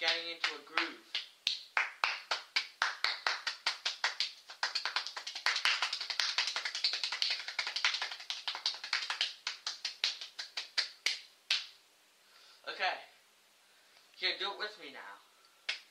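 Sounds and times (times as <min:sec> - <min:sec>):
hand clapping rhythm practice: 0:00.0 - 0:11.8, 0:15.7 - 0:15.8
speech: 0:14.6 - 0:15.3.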